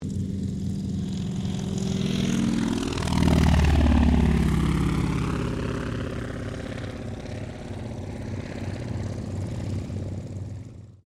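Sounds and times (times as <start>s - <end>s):
CAC Wirraway aircraft takeoff: 0.0s - 11.0s.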